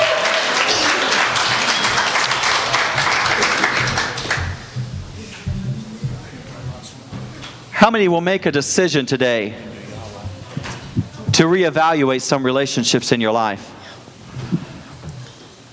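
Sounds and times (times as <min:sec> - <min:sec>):
audience hand clapping in praise: 0:00.0 - 0:05.5
speech: 0:07.8 - 0:09.7, 0:11.4 - 0:13.8.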